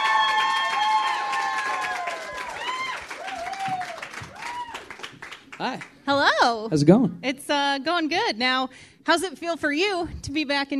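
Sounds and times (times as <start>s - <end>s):
whoops and cheers: 0.0s - 5.1s
studio audience applause: 0.0s - 5.8s
speech: 5.6s - 10.7s.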